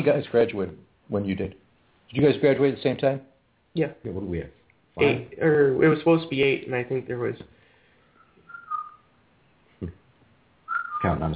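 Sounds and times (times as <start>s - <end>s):
speech: 0.0s - 7.6s, 9.8s - 10.0s, 11.0s - 11.3s
pet bird whistling indoors: 8.1s - 9.1s, 10.7s - 11.2s.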